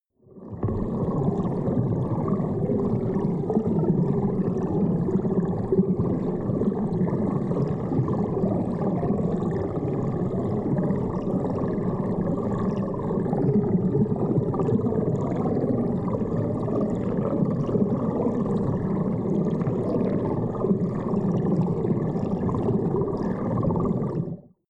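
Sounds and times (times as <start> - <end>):
dark water sound effect: 0.2 - 24.6.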